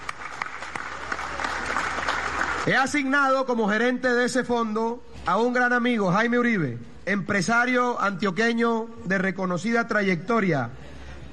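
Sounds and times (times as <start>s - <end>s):
audience applause at a speech honouring the banking sector: 0.0s - 2.7s
speech: 2.6s - 10.8s.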